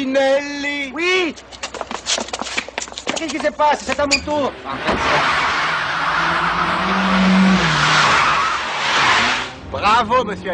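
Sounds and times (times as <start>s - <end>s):
speech: 0.1s - 1.5s, 3.2s - 5.6s, 9.7s - 10.5s
car tires squealing on the road: 3.9s - 10.1s
car engine revving and pulling away: 4.4s - 10.5s.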